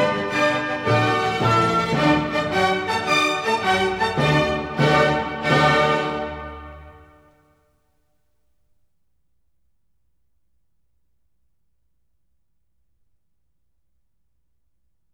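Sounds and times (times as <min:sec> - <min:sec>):
orchestral symphony movement in D major, presto: 0:00.0 - 0:07.2.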